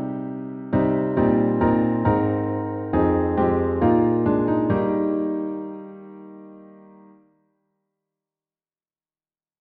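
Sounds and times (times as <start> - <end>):
piano: 0.0 - 7.5.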